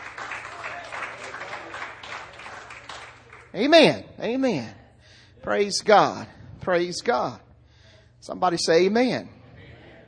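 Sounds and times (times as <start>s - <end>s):
audience clapping: 0.0s - 3.6s
speech: 3.6s - 4.8s, 5.4s - 7.5s, 8.2s - 9.4s.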